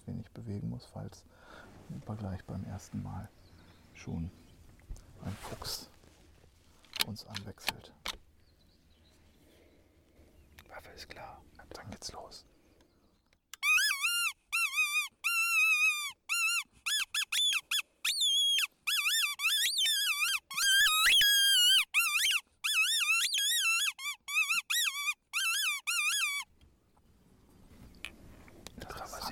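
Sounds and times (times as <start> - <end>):
speech: 0.5 - 3.4, 4.0 - 4.4, 5.2 - 5.9, 7.0 - 8.1, 10.8 - 12.5
hare distress squeal from a hunting predator call: 13.6 - 26.5.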